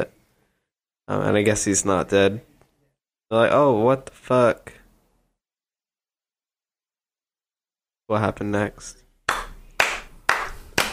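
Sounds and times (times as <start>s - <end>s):
speech: 1.1s - 2.5s, 3.3s - 4.8s, 8.1s - 9.4s
one person clapping hands: 9.3s - 10.9s.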